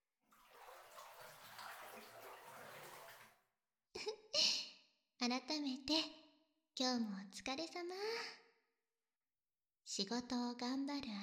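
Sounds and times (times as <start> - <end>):
bath water sloshing as someone washes and settles back into the tub: 0.3 - 3.4
speech: 5.2 - 6.2, 6.8 - 8.4, 9.9 - 11.2.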